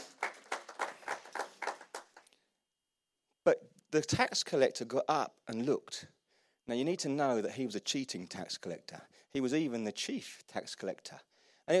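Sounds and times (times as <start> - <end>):
audience applause: 0.0 - 2.3
speech: 3.4 - 11.7.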